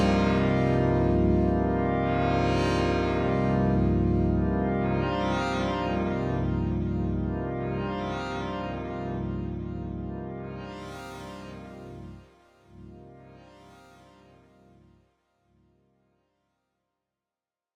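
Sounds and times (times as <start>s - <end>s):
sync and filter modulated chordal synth drone: 0.0s - 12.2s.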